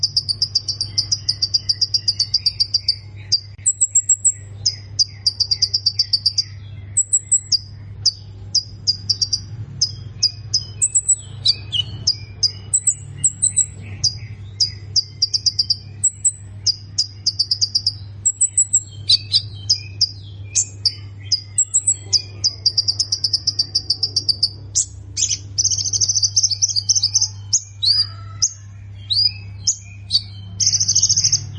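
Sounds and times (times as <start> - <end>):
plain prinia calling with chirps, whistles and ticks: 0.0 - 31.5
steady low background hum: 0.0 - 31.5.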